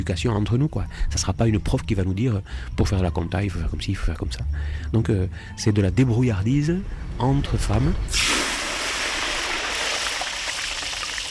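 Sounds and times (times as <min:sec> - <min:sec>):
speech: 0:00.0 - 0:08.5
palm oil thrown into water for soap making: 0:08.1 - 0:11.3.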